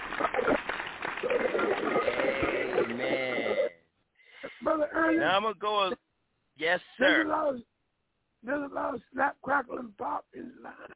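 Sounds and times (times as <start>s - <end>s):
people clapping: 0.0s - 3.7s
speech: 5.1s - 6.0s, 6.6s - 7.7s, 8.4s - 10.9s.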